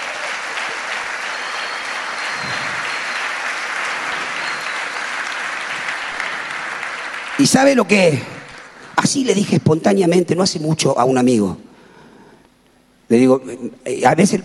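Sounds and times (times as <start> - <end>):
audience applauding: 0.0 - 9.4
speech: 7.4 - 8.4, 9.1 - 11.7, 13.1 - 14.4.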